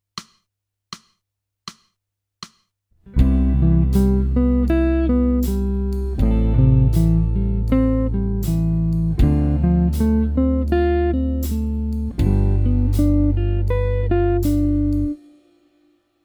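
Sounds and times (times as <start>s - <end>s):
jazz music: 3.2s - 15.3s.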